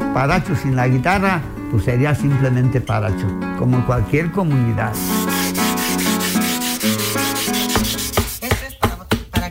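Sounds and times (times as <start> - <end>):
speech: 0.1 - 5.2
stone rubbing a surface to smooth it: 2.7 - 9.3.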